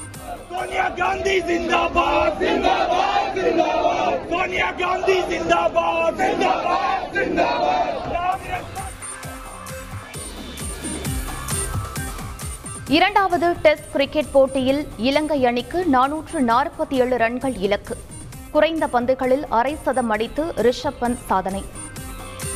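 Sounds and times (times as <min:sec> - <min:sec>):
party workers chanting slogans: 0:00.1 - 0:09.0
speech: 0:00.6 - 0:08.8, 0:12.9 - 0:21.8.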